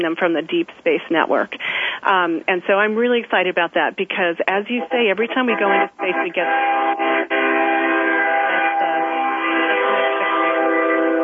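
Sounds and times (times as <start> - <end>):
speech: 0.0 - 7.3
train horn blaring: 4.7 - 11.2.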